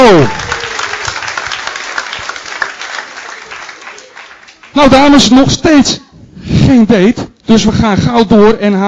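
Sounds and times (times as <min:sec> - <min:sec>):
studio audience applause: 0:00.0 - 0:05.0
speech: 0:00.2 - 0:00.4, 0:04.8 - 0:06.0, 0:06.7 - 0:08.8.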